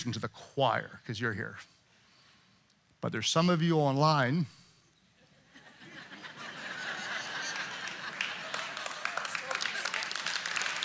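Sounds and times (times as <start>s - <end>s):
speech: 0.0s - 1.8s, 3.0s - 4.6s
laughter: 5.3s - 10.3s
audience clapping: 6.9s - 10.8s.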